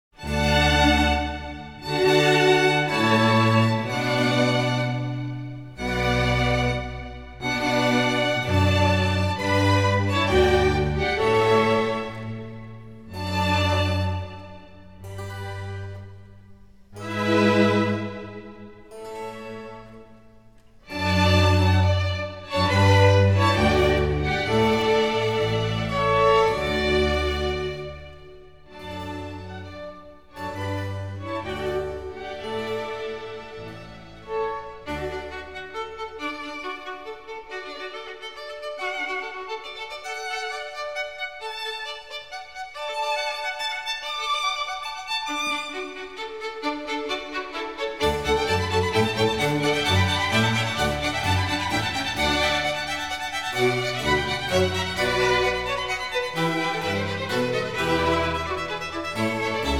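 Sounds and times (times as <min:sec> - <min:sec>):
concerto grosso vivace allegro: 0:00.0 - 0:59.7.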